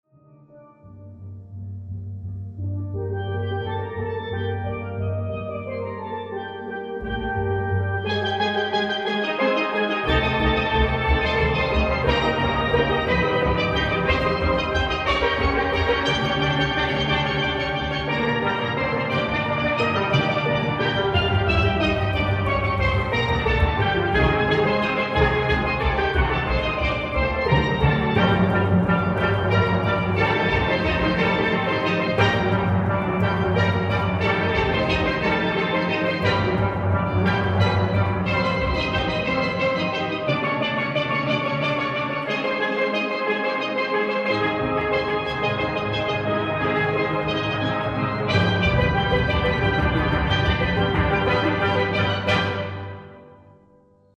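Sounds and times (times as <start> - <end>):
steel band: 3.0 - 53.4.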